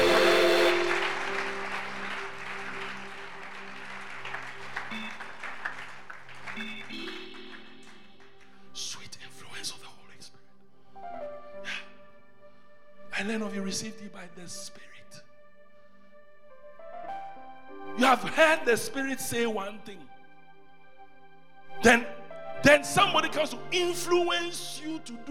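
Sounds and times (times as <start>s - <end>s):
audience clapping: 0.0s - 8.8s
speech: 13.3s - 14.9s, 18.0s - 20.1s, 21.8s - 25.2s.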